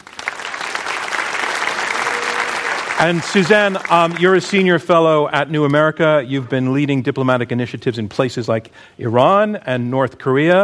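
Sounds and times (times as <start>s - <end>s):
audience applause welcoming a debater: 0.0s - 4.7s
speech: 3.0s - 10.6s.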